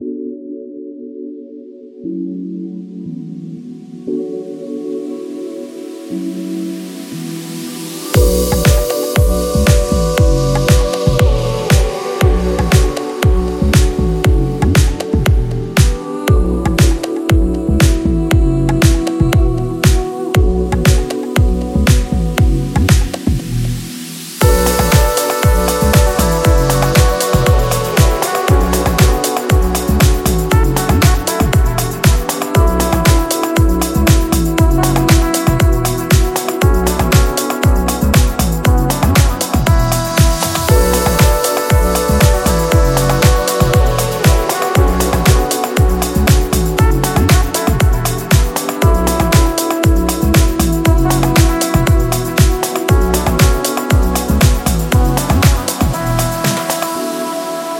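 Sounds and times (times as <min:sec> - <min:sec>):
luxury style house background music: 0:06.0 - 0:57.7.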